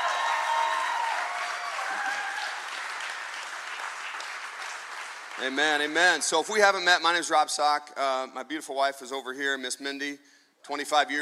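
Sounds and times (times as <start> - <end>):
church congregation applauding: 0.0 - 6.4
speech: 5.4 - 11.2.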